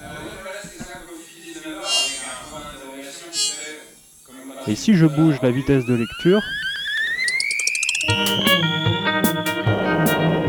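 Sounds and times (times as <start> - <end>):
speech: 4.7 - 6.6
synthesized drone: 5.0 - 10.4.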